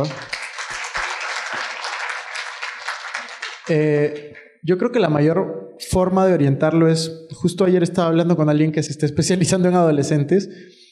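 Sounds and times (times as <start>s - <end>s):
speech: 0.0s - 0.3s, 3.7s - 10.8s
audience applause: 0.0s - 3.9s.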